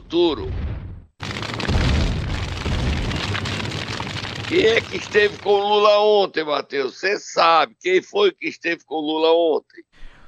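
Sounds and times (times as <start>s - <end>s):
speech: 0.1s - 0.6s, 4.5s - 10.1s
bomb explosion sound effect: 0.4s - 6.0s.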